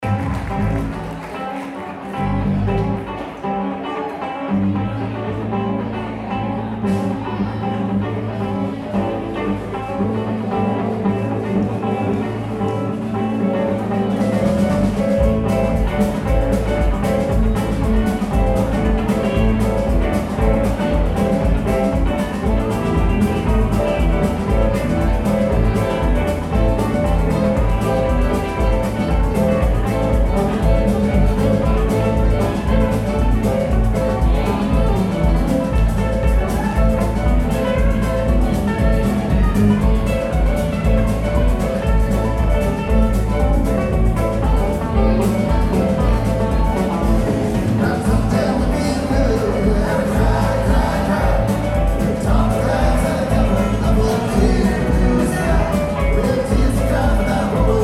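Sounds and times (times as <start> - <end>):
audience: 0.0 - 57.8.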